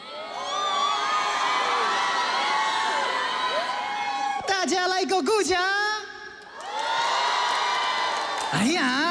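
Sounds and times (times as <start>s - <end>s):
audience shouting and cheering: 0.0s - 4.8s, 6.5s - 9.0s
speech: 4.7s - 5.8s.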